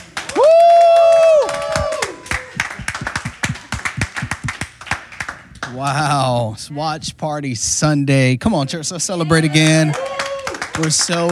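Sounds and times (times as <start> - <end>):
crowd clapping: 0.0 - 5.9, 9.5 - 11.2
speech: 5.8 - 10.2, 10.8 - 11.2.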